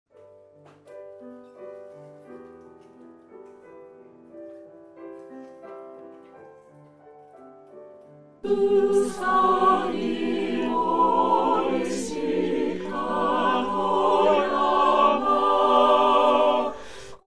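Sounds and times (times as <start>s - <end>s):
chorus singing: 8.4s - 17.2s.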